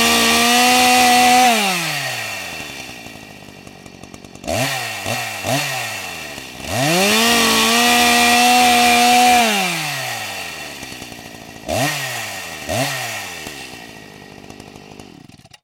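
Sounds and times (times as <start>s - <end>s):
chainsaw: 0.0s - 15.6s.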